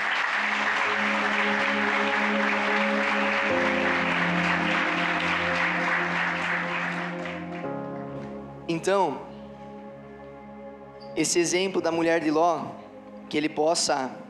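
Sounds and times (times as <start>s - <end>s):
audience applause: 0.0s - 8.2s
speech: 8.8s - 9.3s, 11.2s - 14.2s.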